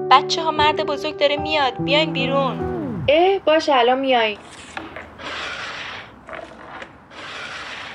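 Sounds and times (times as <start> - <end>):
speech: 0.2 - 5.5
chairs being pushed together: 4.4 - 7.9.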